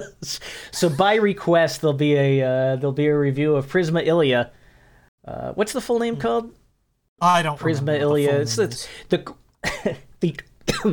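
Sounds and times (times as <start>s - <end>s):
speech: 0.0s - 4.6s, 5.2s - 6.6s, 7.2s - 10.9s
person coughing: 9.6s - 10.0s, 10.7s - 10.9s.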